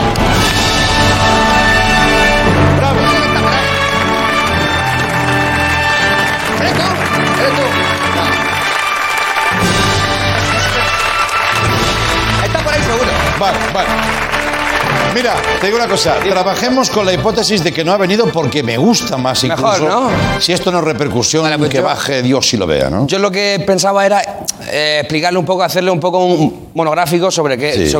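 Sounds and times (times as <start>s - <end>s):
audience applause: 0.0s - 18.2s
music: 0.0s - 22.5s
speech: 15.2s - 27.9s.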